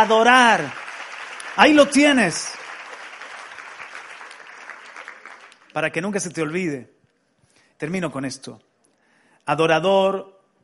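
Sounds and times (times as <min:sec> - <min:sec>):
speech: 0:00.0 - 0:00.8, 0:01.6 - 0:02.6, 0:05.8 - 0:06.9, 0:07.8 - 0:08.7, 0:09.4 - 0:10.4
audience applauding: 0:00.0 - 0:06.0.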